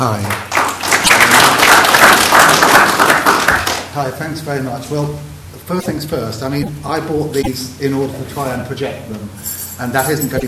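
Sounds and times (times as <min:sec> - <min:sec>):
speech: 0:00.0 - 0:00.4, 0:04.0 - 0:10.4
audience applause welcoming a speaker to the stage: 0:00.2 - 0:03.9.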